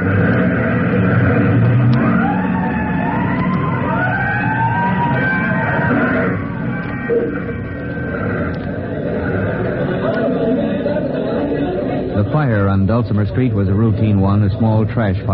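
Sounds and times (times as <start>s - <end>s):
fire truck siren wailing: 0.0s - 10.1s
low rumble: 0.0s - 10.1s
crowd chatter: 0.0s - 15.3s
speech: 12.8s - 15.3s.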